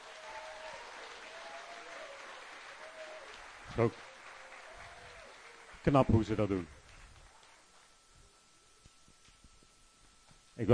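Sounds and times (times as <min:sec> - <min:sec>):
audience applause for music group: 0:00.0 - 0:07.9
speech: 0:03.8 - 0:04.1, 0:05.8 - 0:06.8.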